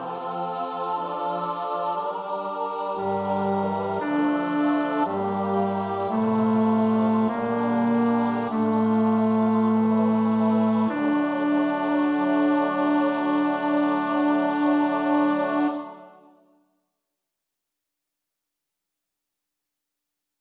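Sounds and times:
bass choir part practice: 0.0s - 16.1s.

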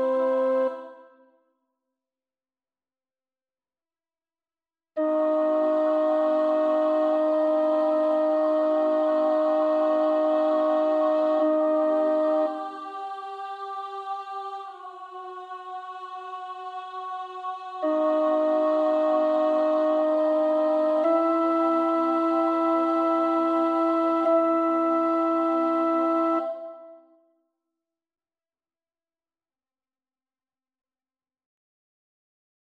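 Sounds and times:
soprano singing: 5.0s - 26.8s.

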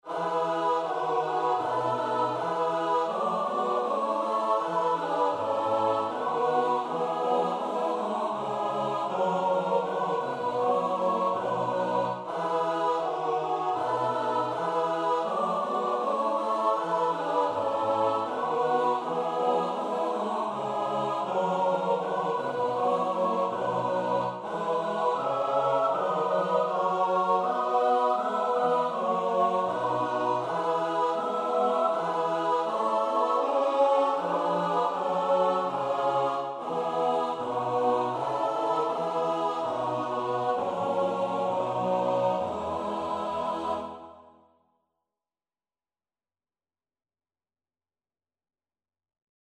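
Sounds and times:
soprano alto tenor bass voices: 0.0s - 44.1s.

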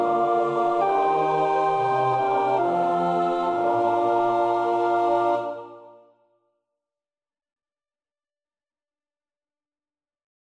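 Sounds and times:
alto choir part practice singing: 0.0s - 6.1s.

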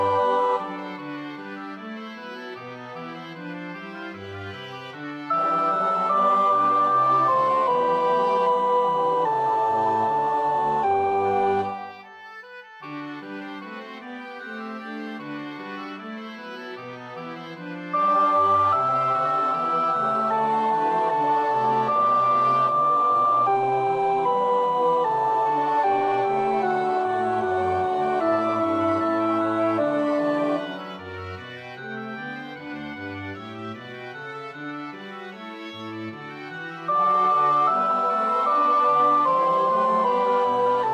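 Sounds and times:
soprano practising a choir part: 0.0s - 0.9s, 5.3s - 11.9s, 17.9s - 30.8s, 36.9s - 40.9s.

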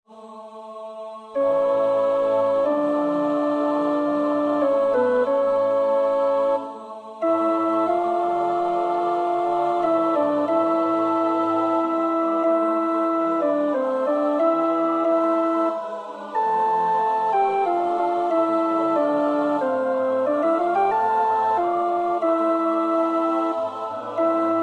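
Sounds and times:
alto choir part practice singing: 0.1s - 24.6s.

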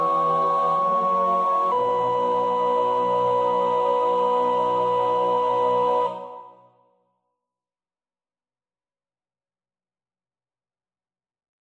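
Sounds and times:
soprano singing: 0.0s - 6.6s.

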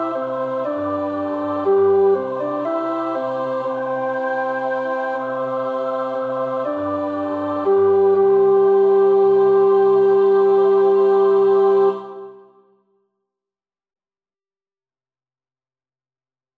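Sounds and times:
tenor voice singing a carol: 0.0s - 12.5s.

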